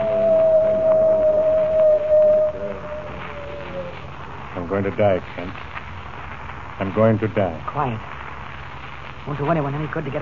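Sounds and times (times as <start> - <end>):
coyote howling: 0.0 - 4.2
speech: 4.8 - 5.7, 6.8 - 8.1, 9.2 - 10.1.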